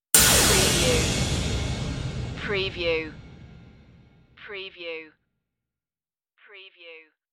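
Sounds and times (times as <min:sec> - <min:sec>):
hit: 0:00.0 - 0:04.3.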